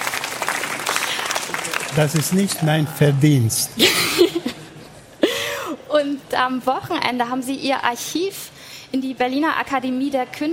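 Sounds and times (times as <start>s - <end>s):
audience applause: 0.0s - 3.1s
speech: 2.0s - 4.2s, 6.0s - 10.5s
laughter: 3.8s - 5.2s.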